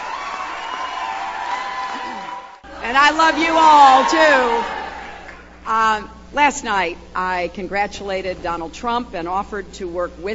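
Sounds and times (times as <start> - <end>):
rowdy crowd cheering at a Hillary Clinton speech: 0.0 - 5.6
speech: 2.8 - 4.8, 5.6 - 10.3.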